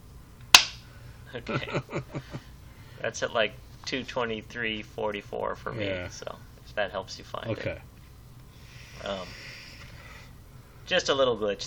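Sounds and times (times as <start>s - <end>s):
single hand clap for audio sync: 0.6s - 0.8s
speech: 1.3s - 2.4s, 3.0s - 7.9s, 9.0s - 9.5s, 10.9s - 11.6s.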